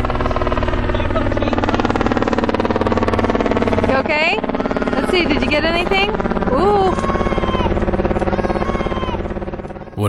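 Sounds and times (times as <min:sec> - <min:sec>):
helicopter flying overhead: 0:00.0 - 0:10.0
speech: 0:05.2 - 0:07.1.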